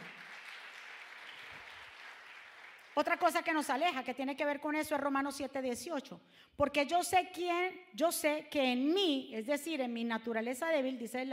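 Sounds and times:
audience applauding: 0:00.0 - 0:03.0
speech: 0:03.0 - 0:11.3.

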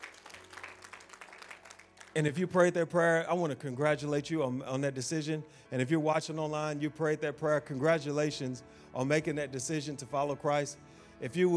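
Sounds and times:
audience hand clapping: 0:00.0 - 0:02.4
speech: 0:02.2 - 0:11.5.

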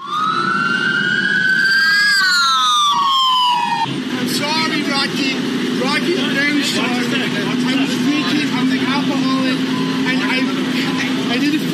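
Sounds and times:
police siren wailing: 0:00.0 - 0:05.0, 0:07.9 - 0:10.9
low rumbling engine drone: 0:00.0 - 0:11.7.

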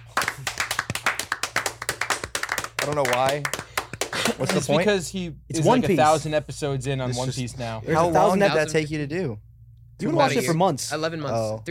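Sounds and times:
loud round of applause: 0:00.0 - 0:04.5
speech: 0:02.8 - 0:11.6.

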